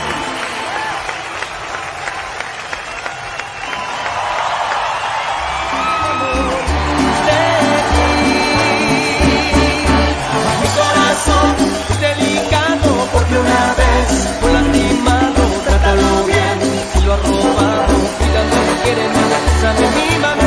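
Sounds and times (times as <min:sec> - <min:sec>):
crowd applause: 0:00.0 - 0:20.4
booming music with heavy bass beat: 0:05.5 - 0:20.4.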